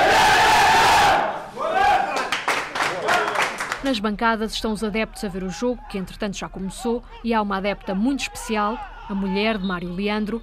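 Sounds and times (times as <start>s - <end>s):
team's pre-game huddle shout: 0.0s - 2.3s, 7.1s - 9.6s
sharp claps: 2.1s - 3.9s
speech: 3.8s - 10.4s.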